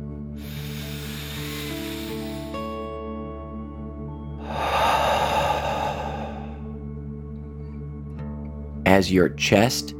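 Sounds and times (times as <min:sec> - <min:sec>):
deep breath in and out: 0:00.4 - 0:02.9, 0:04.3 - 0:06.9
speech: 0:08.9 - 0:09.9.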